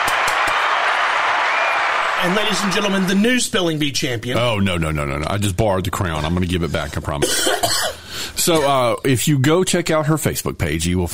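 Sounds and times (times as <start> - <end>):
canned applause: 0.0 - 3.6
speech: 2.2 - 11.1.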